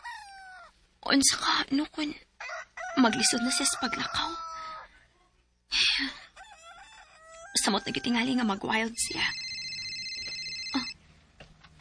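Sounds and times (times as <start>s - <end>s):
speech: 1.0s - 4.5s, 6.0s - 6.2s, 7.6s - 9.4s
mobile phone ringing with a high electronic ringtone: 9.0s - 11.0s.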